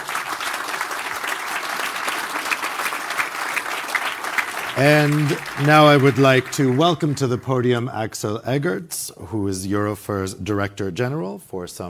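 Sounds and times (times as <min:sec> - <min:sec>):
audience applause for panelists: 0:00.0 - 0:07.8
speech: 0:04.8 - 0:11.8.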